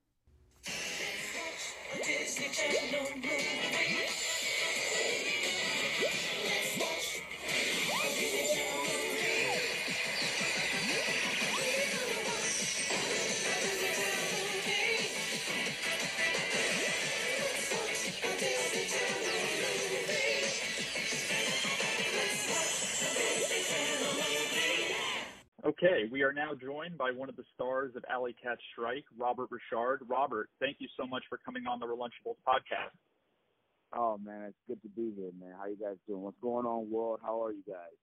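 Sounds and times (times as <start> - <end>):
TV movie intro music: 0.7 - 24.9
speech: 2.5 - 4.3, 26.3 - 33.1, 33.9 - 38.0.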